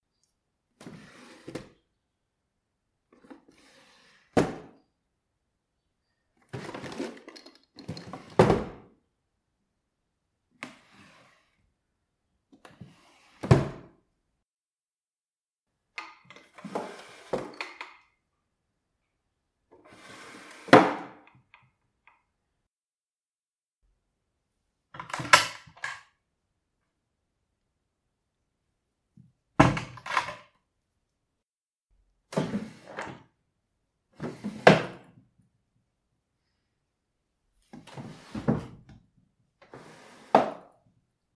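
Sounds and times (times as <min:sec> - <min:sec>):
drawers opening and closing: 0:00.8 - 0:01.8, 0:03.2 - 0:04.8, 0:06.4 - 0:08.8, 0:12.6 - 0:13.9, 0:16.2 - 0:18.0, 0:19.8 - 0:21.3, 0:25.0 - 0:26.0, 0:29.6 - 0:30.5, 0:32.3 - 0:33.3, 0:34.2 - 0:35.1, 0:37.7 - 0:38.9, 0:39.6 - 0:40.8.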